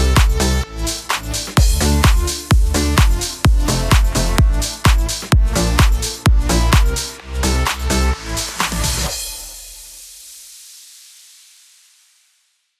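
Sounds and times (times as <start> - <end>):
house music in D minor at 128 BPM: 0.0 - 10.0.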